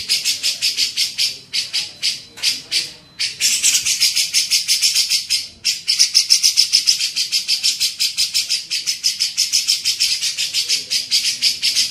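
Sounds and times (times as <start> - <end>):
Grey-cheeked bulbul harsh chattering: 0.0 - 11.8.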